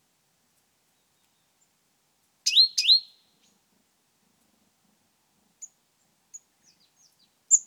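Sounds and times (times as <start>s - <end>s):
great tit churring call: 2.5s - 3.1s.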